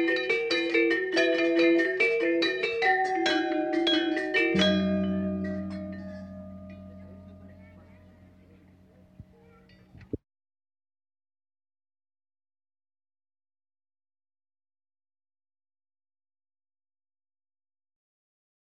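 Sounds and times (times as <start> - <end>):
selunding ensemble playing with 120 cents tuning: 0.7 - 8.6.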